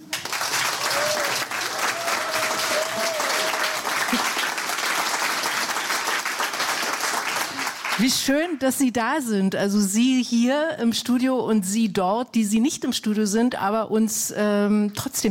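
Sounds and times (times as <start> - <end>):
studio audience applause: 0.0 - 8.0
speech: 8.0 - 15.2.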